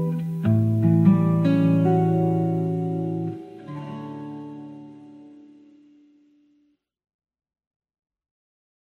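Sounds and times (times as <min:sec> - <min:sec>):
lo-fi chill music: 0:00.0 - 0:06.1.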